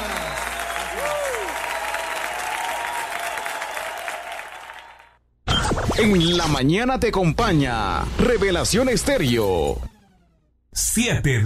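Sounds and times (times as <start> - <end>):
audience applauding: 0.0 - 5.2
speech: 6.0 - 9.9, 10.8 - 11.4.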